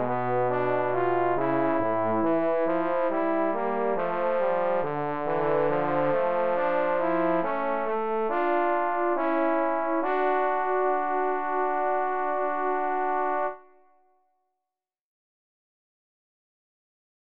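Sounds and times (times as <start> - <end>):
trombone duet with accompaniment: 0.0 - 13.6.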